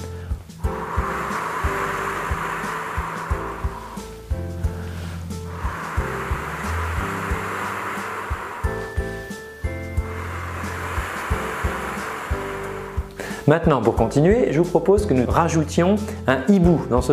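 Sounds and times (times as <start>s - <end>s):
person blowing through rounded lips imitating wind rustling through tree leaves: 0.1s - 13.5s
soft steady humming tone: 0.6s - 13.3s
speech: 13.5s - 17.1s.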